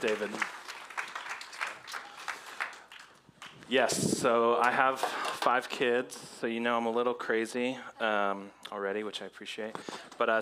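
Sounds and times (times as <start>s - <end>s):
speech: 0.0s - 0.6s, 3.7s - 10.4s
audience applause welcoming a speaker to the stage: 0.0s - 3.6s.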